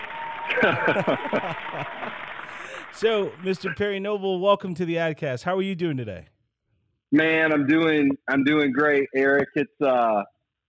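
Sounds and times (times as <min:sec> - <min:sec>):
round of applause: 0:00.0 - 0:04.1
laughter: 0:00.4 - 0:05.0, 0:07.2 - 0:10.2
speech: 0:00.5 - 0:06.3, 0:07.1 - 0:10.3.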